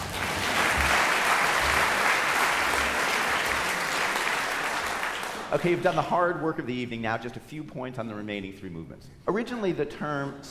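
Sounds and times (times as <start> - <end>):
audience clapping: 0.0 - 6.0
speech: 5.5 - 10.4.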